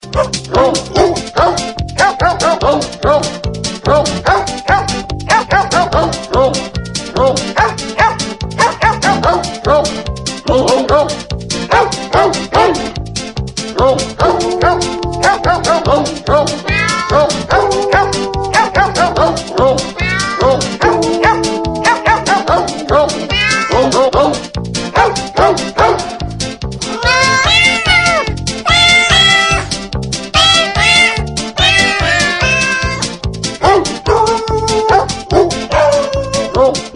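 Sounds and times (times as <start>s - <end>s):
dogs and cats singing a Christmas carol: 0.2s - 13.0s, 13.7s - 36.9s.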